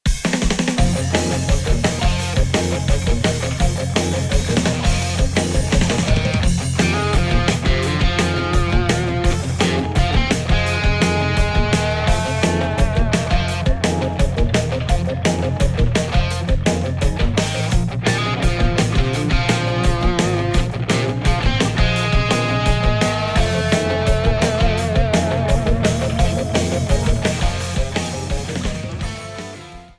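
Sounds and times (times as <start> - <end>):
underground background music arrangement: 0.0 - 29.9.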